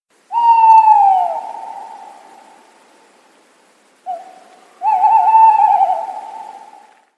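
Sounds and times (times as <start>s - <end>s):
Strix aluco calling: 0.3s - 2.7s, 4.0s - 7.1s.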